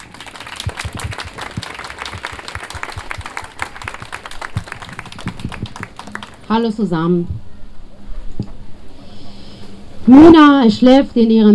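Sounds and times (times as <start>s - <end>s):
audience applause: 0.0s - 6.6s
speech: 6.5s - 7.4s, 10.1s - 11.5s.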